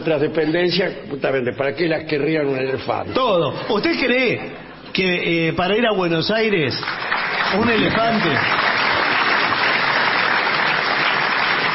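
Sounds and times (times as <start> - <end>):
speech: 0.0 - 8.7
audience applause: 6.8 - 11.7.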